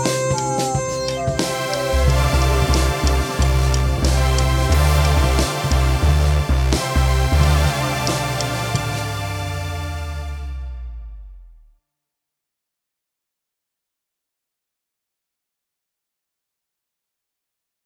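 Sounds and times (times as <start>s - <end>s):
downtempo music: 0.0s - 11.7s.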